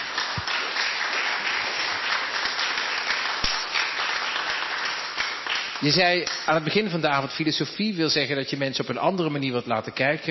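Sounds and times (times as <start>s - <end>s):
audience applause: 0.0s - 7.0s
speech: 5.8s - 10.2s.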